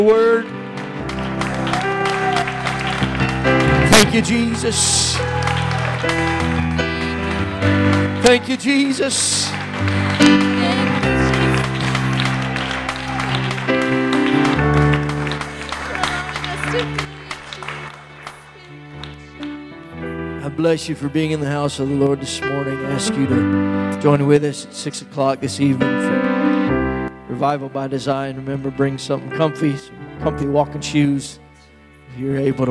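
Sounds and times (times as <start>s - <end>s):
speech: 0.0s - 0.6s, 4.1s - 5.4s, 6.0s - 6.5s, 7.6s - 10.9s, 20.6s - 26.2s, 27.4s - 31.4s, 32.2s - 32.6s
organ or keyboard music: 0.0s - 32.6s
audience applause: 0.5s - 19.6s.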